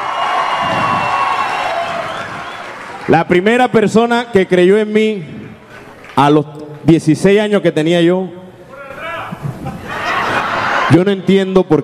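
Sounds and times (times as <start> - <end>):
crowd clapping: 0.0 - 3.4, 5.8 - 6.3
speech: 3.1 - 5.4, 6.2 - 8.4, 10.9 - 11.8
laughter: 8.9 - 11.3.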